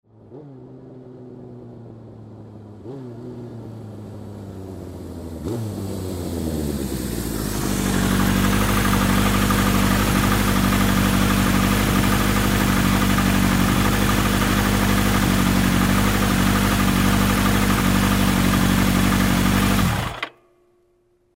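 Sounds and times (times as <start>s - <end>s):
motorcycle approaching and turning off: 0.0s - 20.3s.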